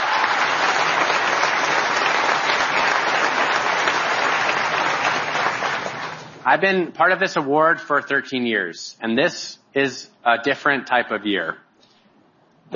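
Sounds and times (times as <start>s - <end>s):
crowd applauding: 0.0s - 6.4s
speech: 6.5s - 11.6s.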